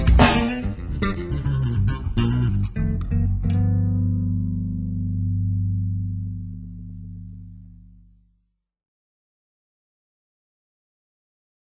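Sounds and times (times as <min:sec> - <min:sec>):
heavy blues bass: 0:00.0 - 0:08.3.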